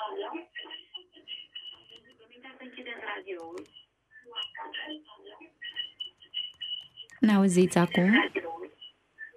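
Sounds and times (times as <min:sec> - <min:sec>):
speech: 0:07.2 - 0:08.4
radio playing behind a telephone caller's line: 0:07.3 - 0:08.3.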